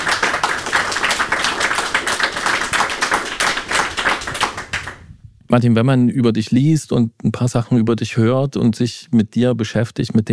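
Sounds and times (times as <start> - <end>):
audience applause: 0.0 - 5.0
speech: 5.5 - 10.3.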